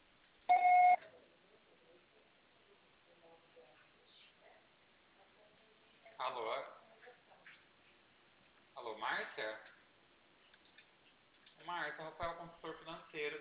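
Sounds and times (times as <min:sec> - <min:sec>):
voicemail recording beep tone: 0:00.5 - 0:01.0
speech: 0:06.2 - 0:06.8, 0:08.9 - 0:09.7, 0:11.6 - 0:13.3.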